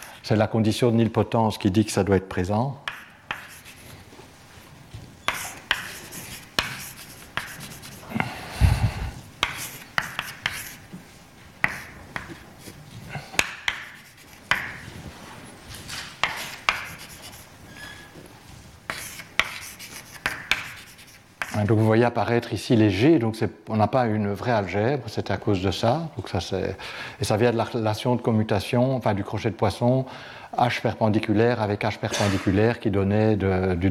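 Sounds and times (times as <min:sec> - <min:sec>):
speech: 0:00.3 - 0:02.8, 0:22.2 - 0:33.9
chalk or marker writing on a board during a mathematics lecture: 0:02.8 - 0:04.0, 0:05.2 - 0:08.3, 0:09.4 - 0:11.0, 0:11.6 - 0:14.9, 0:15.8 - 0:18.3, 0:18.9 - 0:21.6.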